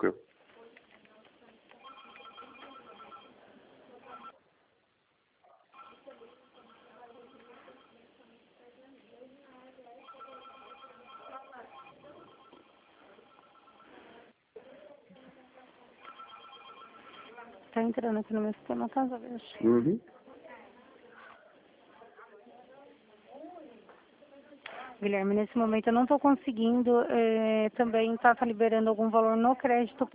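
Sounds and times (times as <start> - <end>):
speech: 0.0 - 0.3, 17.8 - 20.2, 25.0 - 30.1
telephone ringing: 1.8 - 4.4, 5.7 - 8.2, 9.9 - 14.4, 16.0 - 17.7.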